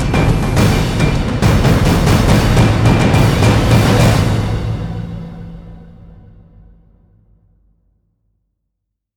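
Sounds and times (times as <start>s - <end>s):
drums: 0.0s - 7.0s.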